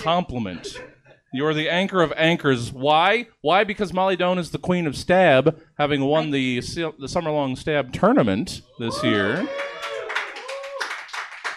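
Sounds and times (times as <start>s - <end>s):
laughter: 0.0s - 1.2s
speech: 0.0s - 9.8s
people applauding: 8.9s - 11.5s.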